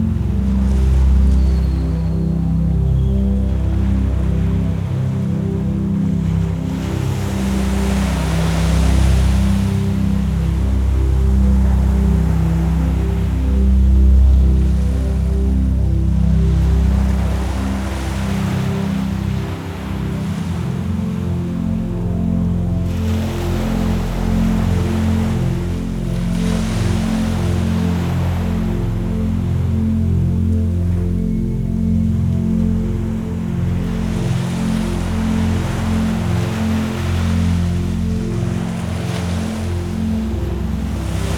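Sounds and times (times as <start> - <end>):
ocean: 0.0 - 41.3
relaxing healing vibrations music: 0.0 - 41.3.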